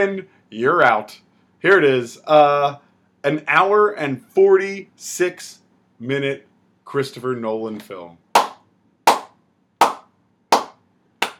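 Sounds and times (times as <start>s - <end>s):
speech: 0.0s - 8.2s
slow hand clapping near microphone: 8.4s - 11.3s.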